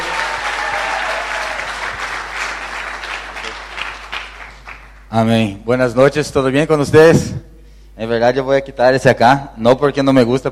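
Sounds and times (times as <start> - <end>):
audience applause: 0.0 - 5.0
speech: 5.1 - 10.5.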